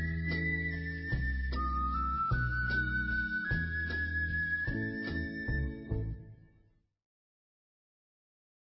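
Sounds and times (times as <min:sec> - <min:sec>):
ocarina playing: 0:00.0 - 0:05.9.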